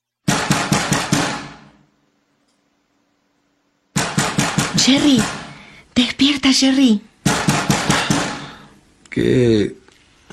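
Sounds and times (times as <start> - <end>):
knocking on a door: 0.3 - 1.6, 4.0 - 5.5, 7.2 - 8.5
speech: 4.8 - 5.4, 6.0 - 7.1, 9.2 - 10.3.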